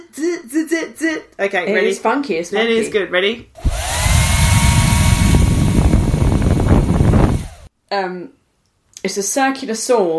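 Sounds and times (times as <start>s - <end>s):
speech: 0.2s - 3.6s, 7.9s - 8.4s, 9.0s - 10.1s
hairdryer running: 3.6s - 7.7s.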